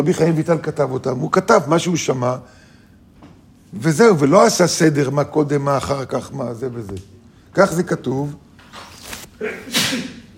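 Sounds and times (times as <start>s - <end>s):
speech: 0.0s - 2.6s, 3.7s - 10.2s
sneeze: 9.4s - 10.3s.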